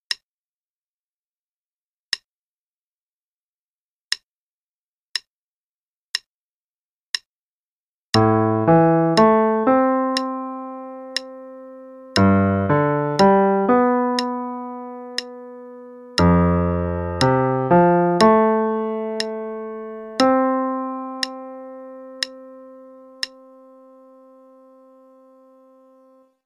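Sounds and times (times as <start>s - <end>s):
piano left hand playing: 8.2s - 26.4s.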